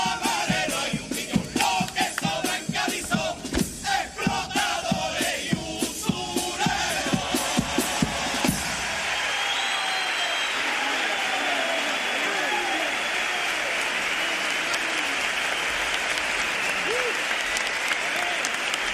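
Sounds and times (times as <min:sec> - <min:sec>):
loud sharp beats: 0:00.0 - 0:09.3
theatre audience applause in Cádiz: 0:07.3 - 0:18.9.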